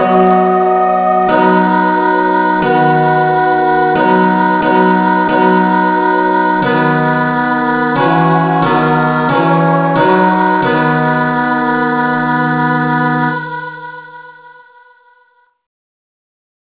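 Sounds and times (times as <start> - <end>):
instrumental music in key of B: 0.0 - 13.6.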